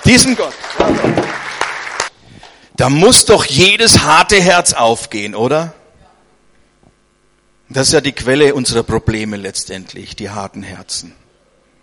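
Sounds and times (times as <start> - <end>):
applause: 0.0 - 2.2
speech: 0.1 - 1.5, 2.8 - 5.8, 7.7 - 11.2.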